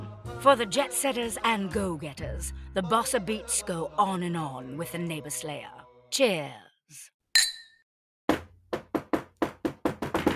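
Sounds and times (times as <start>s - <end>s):
speech: 0.4s - 7.1s
knocking on a door: 8.3s - 10.3s.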